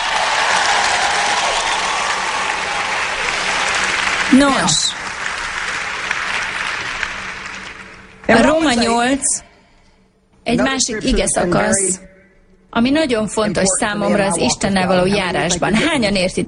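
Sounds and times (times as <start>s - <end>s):
audience applause: 0.0s - 8.8s
speech: 4.3s - 5.0s, 8.3s - 9.5s, 10.5s - 12.1s, 12.7s - 16.4s.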